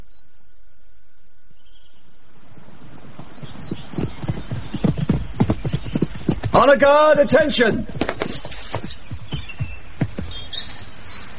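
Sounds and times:
horse hooves clip-clopping: 2.6s - 11.3s
speech: 6.6s - 7.9s.

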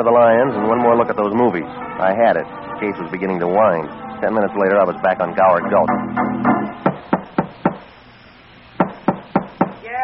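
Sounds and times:
speech: 0.0s - 7.1s
knocking on a door: 6.8s - 7.8s, 8.8s - 9.8s.

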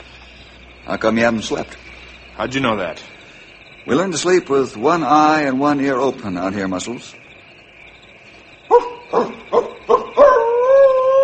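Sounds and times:
speech: 0.9s - 1.8s, 2.4s - 3.2s, 3.8s - 7.2s, 8.8s - 9.4s
wolf howling: 8.7s - 11.2s.

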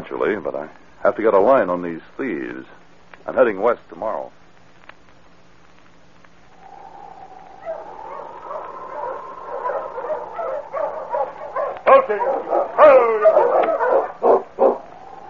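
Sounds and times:
speech: 0.0s - 4.4s, 12.1s - 14.3s
pack of sled dogs whining and whimpering: 6.7s - 15.2s.

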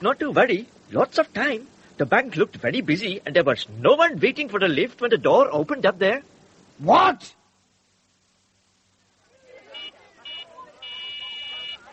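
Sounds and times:
speech: 0.0s - 7.4s
low murmur: 0.0s - 11.9s
walkie-talkie call buzzer: 9.7s - 11.9s.

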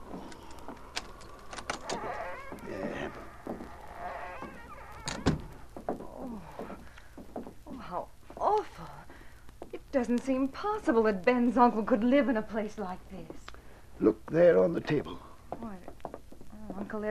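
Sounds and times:
door being unlocked and opened: 0.2s - 2.6s, 3.5s - 5.6s
speech: 10.0s - 13.3s, 14.0s - 15.2s.

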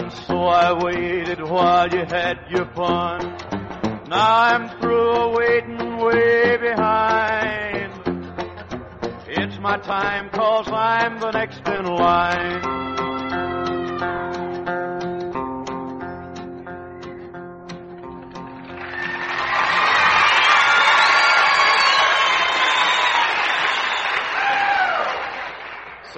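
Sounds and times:
speech: 0.1s - 7.6s, 9.6s - 13.0s
closing notes of live music: 1.8s - 9.4s, 11.3s - 24.5s
audience whistles and whoops: 12.6s - 14.2s, 18.8s - 25.4s
large concert audience applause and cheering: 18.2s - 26.1s.

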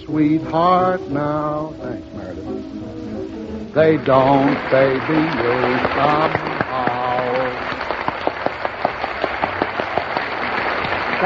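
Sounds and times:
speech: 0.1s - 3.0s, 3.7s - 6.5s
audience applause: 4.0s - 11.2s.

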